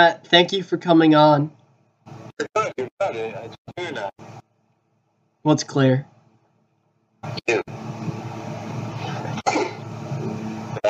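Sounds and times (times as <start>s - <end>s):
speech: 0.0s - 1.6s, 2.4s - 4.4s, 5.4s - 6.1s, 7.2s - 8.2s
sneeze: 9.4s - 9.8s.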